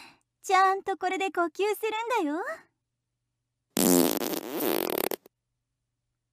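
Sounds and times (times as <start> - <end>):
speech: 0.5 - 2.7
sputtering fart: 3.7 - 5.3.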